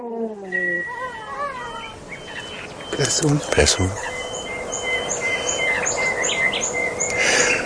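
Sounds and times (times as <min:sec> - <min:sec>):
several birds chirping and whistling: 0:00.0 - 0:07.6
steady outdoor hiss: 0:00.0 - 0:07.6
speech: 0:03.0 - 0:04.1.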